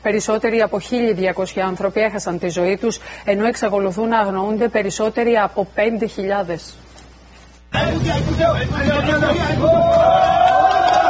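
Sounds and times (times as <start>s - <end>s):
speech: 0.0s - 6.8s, 7.8s - 10.4s
rescue workers applauding: 8.9s - 11.0s.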